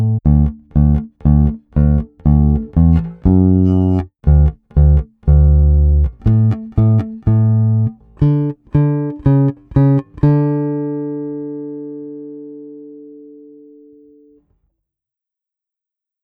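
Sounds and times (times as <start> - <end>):
bass: 0.0 - 10.9.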